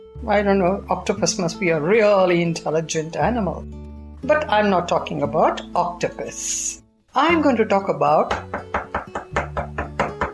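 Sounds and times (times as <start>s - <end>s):
speech: 0.2s - 8.7s
firm knocking on a door: 8.3s - 10.3s.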